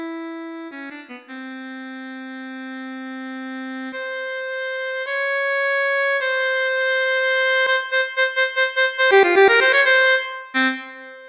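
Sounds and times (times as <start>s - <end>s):
MIDI music: 4.0s - 11.2s.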